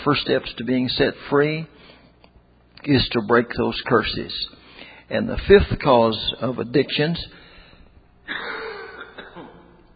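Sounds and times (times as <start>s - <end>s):
speech: 0.0s - 2.0s, 2.8s - 7.4s
man coughing: 8.3s - 9.9s.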